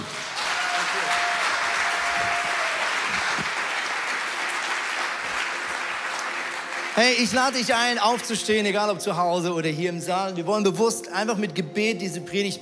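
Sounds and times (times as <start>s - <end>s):
audience applauding: 0.0s - 8.4s
speech: 7.0s - 12.6s.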